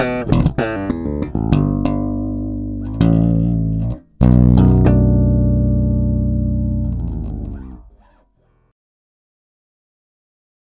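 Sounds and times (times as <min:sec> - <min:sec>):
slap bass: 0:00.0 - 0:08.1.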